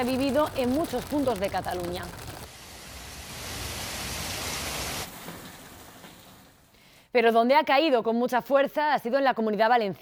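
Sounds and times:
speech: 0:00.0 - 0:02.3, 0:07.1 - 0:09.9
hail falling during a storm: 0:00.0 - 0:02.5.

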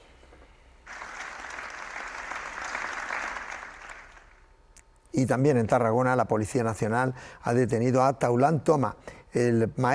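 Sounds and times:
crowd applause after a minute's silence: 0:00.9 - 0:04.4
speech: 0:05.1 - 0:09.9.

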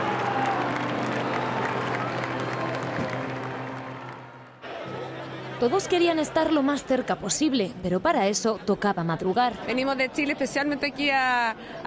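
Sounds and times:
crowd applause: 0:00.0 - 0:07.0
speech: 0:05.6 - 0:11.8.

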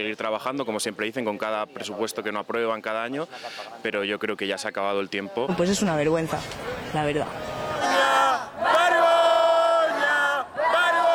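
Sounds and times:
speech: 0:00.0 - 0:07.5
protest crowd shouting: 0:06.6 - 0:11.1.

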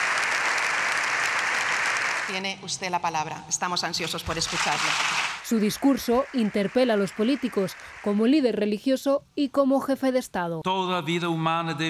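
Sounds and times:
applause from a large audience filling a chamber: 0:00.0 - 0:02.3, 0:05.0 - 0:08.2
speech: 0:02.3 - 0:11.8.

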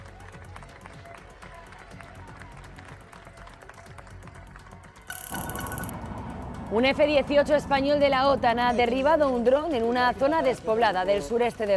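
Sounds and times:
crowd applauding departing emergency troops: 0:00.0 - 0:05.9
speech: 0:06.7 - 0:11.7.

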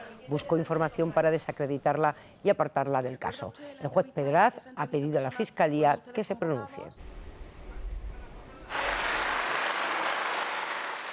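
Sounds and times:
speech: 0:00.3 - 0:07.1
applause in the European Parliament in Strasbourg: 0:08.7 - 0:11.1.

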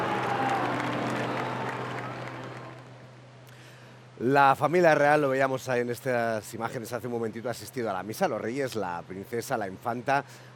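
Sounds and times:
crowd applauding the Pope: 0:00.0 - 0:03.0
speech: 0:04.2 - 0:10.5.

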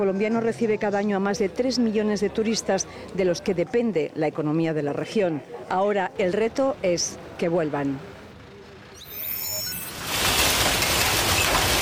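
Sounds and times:
speech: 0:00.0 - 0:08.1
heavy rain during a storm in Besalú: 0:09.6 - 0:11.8.

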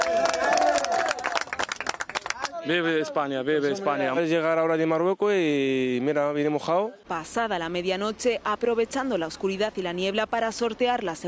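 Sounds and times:
crowd cheering and shouting at an arrival: 0:00.0 - 0:01.5
sharp rapid clapping: 0:00.0 - 0:02.6
speech: 0:02.6 - 0:11.2.

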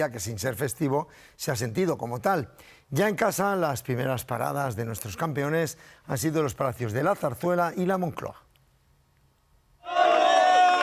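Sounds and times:
speech: 0:00.0 - 0:08.4
palace staff at Zarzuela cheering the arrival of the World Cup trophy: 0:09.8 - 0:10.8.

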